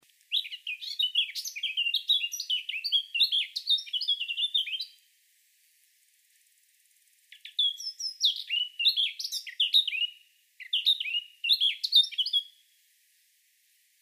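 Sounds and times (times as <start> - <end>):
Eurasian blackcap Sylvia atricapilla song: 0.3 - 5.0, 7.3 - 12.6.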